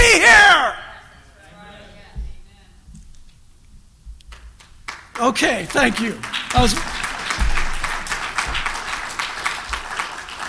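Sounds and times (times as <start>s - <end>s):
audience applause: 4.9s - 10.4s
speech: 5.2s - 7.0s.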